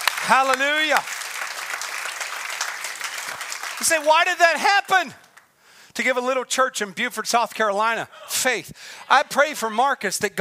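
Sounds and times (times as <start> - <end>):
audience clapping in praise: 0.0 - 5.5
speech: 0.2 - 1.2, 3.8 - 5.2, 6.0 - 10.3.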